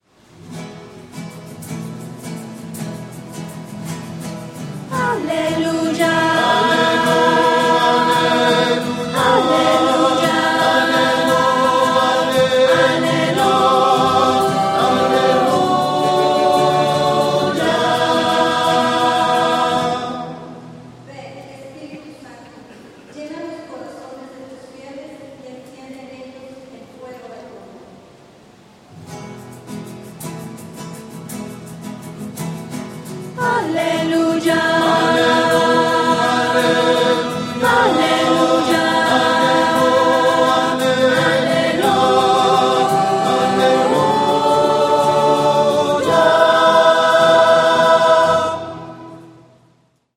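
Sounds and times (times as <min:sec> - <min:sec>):
voices: 0:04.9 - 0:20.4, 0:21.1 - 0:27.9, 0:33.4 - 0:49.0.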